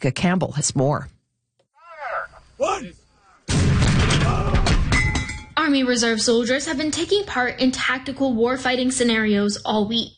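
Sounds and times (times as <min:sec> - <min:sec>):
speech: 0:00.0 - 0:01.2, 0:05.7 - 0:10.1
howitzer firing during an Army Reserve training exercise: 0:03.5 - 0:05.0.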